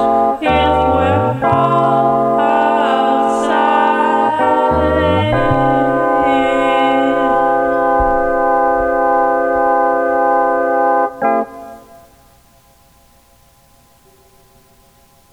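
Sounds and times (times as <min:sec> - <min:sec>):
conch shell horn: 0:00.0 - 0:12.0.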